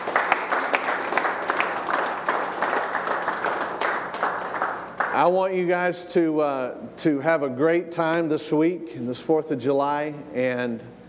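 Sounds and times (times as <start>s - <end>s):
audience hand clap applause: 0.0s - 5.4s
speech: 5.2s - 11.0s.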